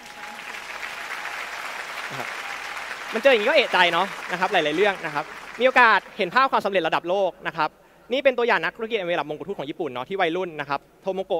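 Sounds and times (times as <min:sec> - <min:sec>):
audience applause: 0:00.0 - 0:06.5
speech: 0:02.1 - 0:02.4, 0:03.1 - 0:11.3.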